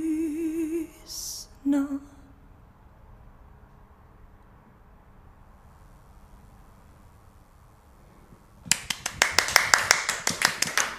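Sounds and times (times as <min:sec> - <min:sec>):
speech: 0:01.1 - 0:02.1
audience applause after a poem performance: 0:08.7 - 0:10.9.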